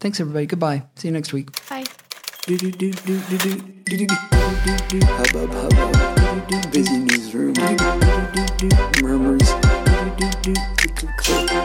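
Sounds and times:
speech: 0.0s - 1.9s, 2.5s - 11.6s
typewriter typing: 1.5s - 3.7s.

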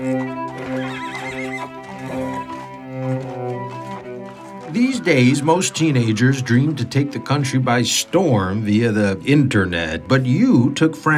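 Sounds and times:
horse neighing in stables: 0.0s - 7.3s
laughter: 0.0s - 10.7s
speech: 4.7s - 11.1s.

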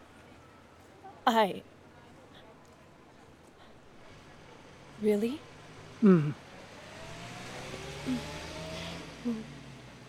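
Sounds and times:
speech: 1.3s - 1.7s, 5.0s - 6.4s, 8.0s - 8.3s, 9.2s - 9.5s
car engine humming on Brand Boulevard: 5.4s - 10.0s
short vocal sounds: 6.0s - 6.4s, 9.2s - 9.5s.

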